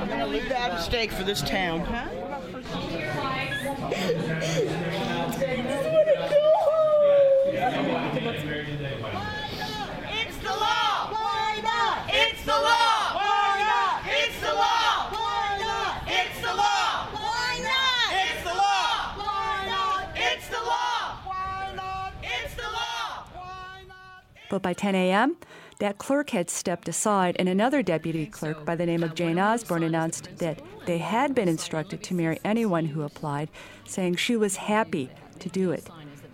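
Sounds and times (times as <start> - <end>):
speech: 0.3 - 6.4, 7.6 - 9.4, 24.5 - 36.0
laughter: 3.2 - 8.6
crowd shouting and cheering: 5.6 - 8.4, 9.0 - 24.6.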